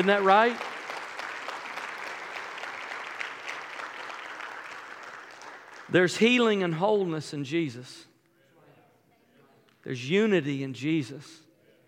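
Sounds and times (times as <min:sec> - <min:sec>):
speech: 0:00.0 - 0:00.7, 0:05.9 - 0:08.1, 0:09.8 - 0:11.4
audience clapping: 0:00.0 - 0:06.5.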